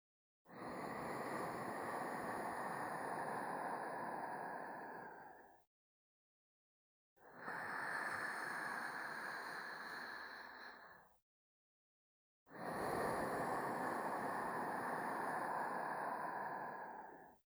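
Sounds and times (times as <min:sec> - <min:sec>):
sleep breathing loop: 0:00.7 - 0:05.4, 0:07.4 - 0:11.0, 0:12.6 - 0:17.4.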